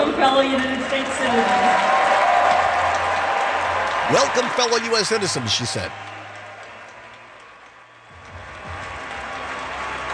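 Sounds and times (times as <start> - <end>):
standing ovation from players, spectators and announcers at center court: 0.0 - 10.1
speech: 0.4 - 1.7, 4.1 - 6.1.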